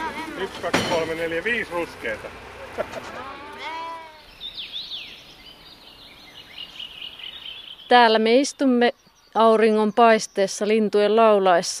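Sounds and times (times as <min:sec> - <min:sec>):
speech: 0:00.4 - 0:03.8, 0:07.9 - 0:11.7
sheep bleating: 0:03.1 - 0:04.3.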